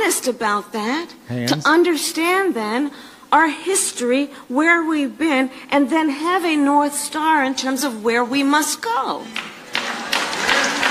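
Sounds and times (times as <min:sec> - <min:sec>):
speech: 0:00.2 - 0:09.5
audience applause: 0:09.5 - 0:10.9.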